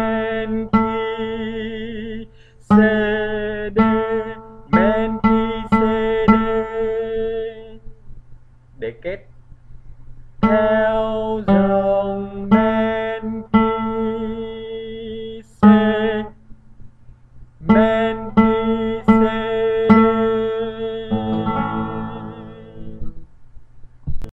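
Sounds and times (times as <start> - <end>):
soprano singing: 0.0 - 7.8, 10.4 - 16.4, 17.6 - 23.1.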